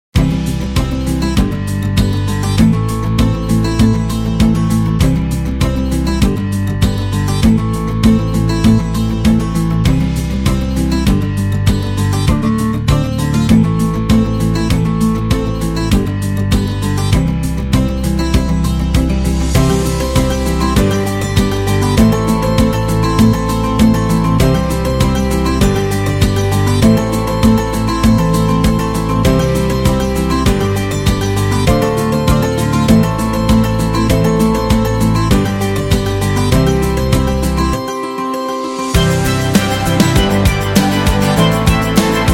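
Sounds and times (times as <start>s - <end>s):
guitar playing: 0.2s - 42.3s.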